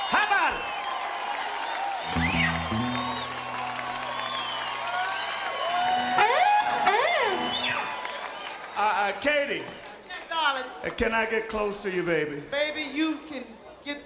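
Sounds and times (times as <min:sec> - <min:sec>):
crowd clapping: 0:00.0 - 0:10.7
whoops and whistles: 0:02.0 - 0:08.2
speech: 0:11.0 - 0:13.2.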